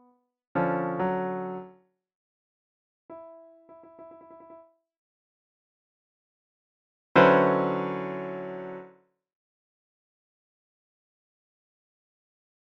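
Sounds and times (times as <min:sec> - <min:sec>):
short piano pieces: 0:00.6 - 0:01.7, 0:03.1 - 0:04.7, 0:07.2 - 0:08.9.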